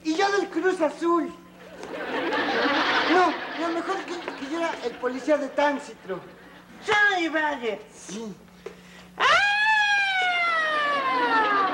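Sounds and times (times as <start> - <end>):
faint steady hum: 0.0 - 11.7
speech: 0.8 - 1.4, 3.3 - 8.5
laughter: 1.6 - 6.8, 10.2 - 11.7
voice imitating an ambulance siren: 9.2 - 11.7.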